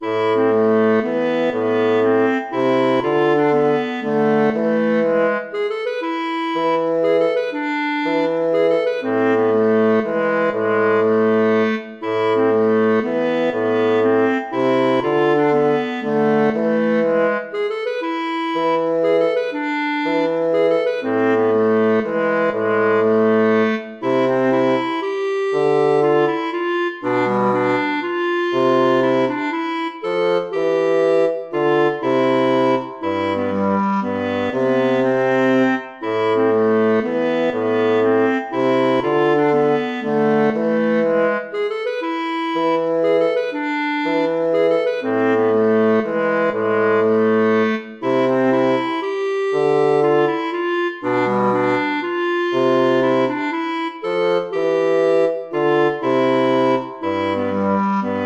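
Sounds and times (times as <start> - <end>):
baroque minuet in minor key: 0.0 - 58.2.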